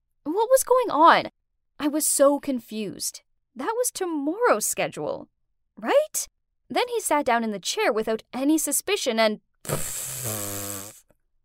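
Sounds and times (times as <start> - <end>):
speech: 0.4 - 10.6
loud fart: 9.7 - 11.0.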